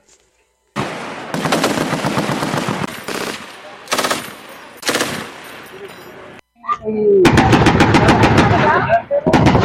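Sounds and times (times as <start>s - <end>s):
Philippine Army artillery firing in live-fire exercise: 0.8s - 5.4s, 7.2s - 9.6s
gunfire in live-fire exercise: 0.8s - 5.6s, 7.2s - 9.6s.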